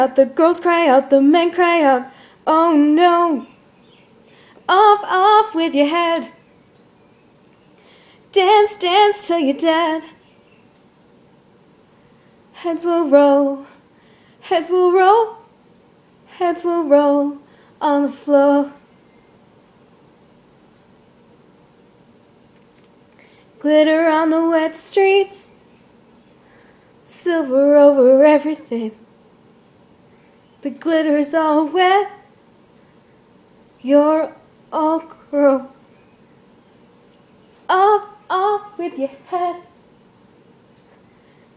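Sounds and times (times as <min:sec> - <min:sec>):
woman singing: 0:00.0 - 0:03.6, 0:04.6 - 0:06.4, 0:08.3 - 0:10.2, 0:12.6 - 0:13.8, 0:14.4 - 0:15.5, 0:16.3 - 0:18.8, 0:23.6 - 0:25.5, 0:27.0 - 0:29.0, 0:30.6 - 0:32.3, 0:33.8 - 0:35.8, 0:37.6 - 0:39.8.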